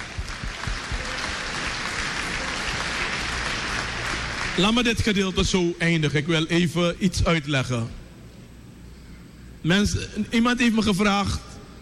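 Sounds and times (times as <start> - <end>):
audience applause: 0.0 - 5.1
speech: 4.6 - 8.0, 9.6 - 11.5.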